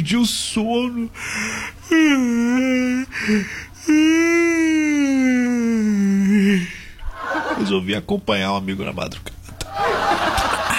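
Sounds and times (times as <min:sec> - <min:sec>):
speech: 0:00.0 - 0:04.7, 0:07.6 - 0:09.3
person yawning aloud: 0:01.4 - 0:07.0
laughter: 0:07.0 - 0:07.8, 0:09.6 - 0:10.7.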